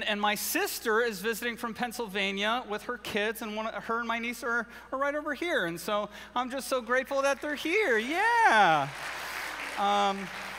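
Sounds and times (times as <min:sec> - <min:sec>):
speech: 0:00.0 - 0:09.2, 0:09.8 - 0:10.5
audience clapping: 0:08.4 - 0:10.5.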